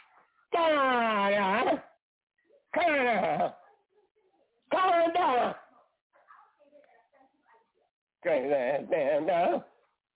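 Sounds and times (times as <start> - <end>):
speech: 0.5 - 1.8, 8.2 - 9.7
dog warbling bark-howl: 4.7 - 5.7.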